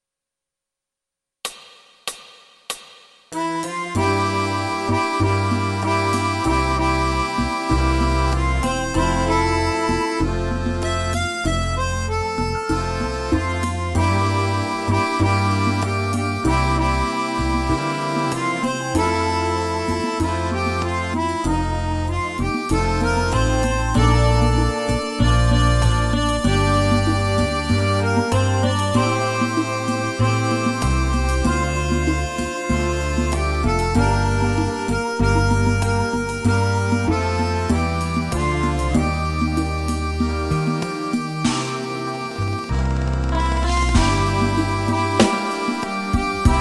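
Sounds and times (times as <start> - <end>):
accordion: 3.3 - 46.6.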